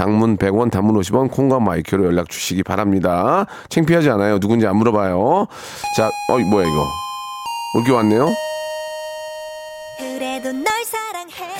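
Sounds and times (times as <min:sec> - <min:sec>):
speech: 0:00.0 - 0:07.0, 0:07.7 - 0:08.5
golden bell ringing: 0:05.8 - 0:10.8.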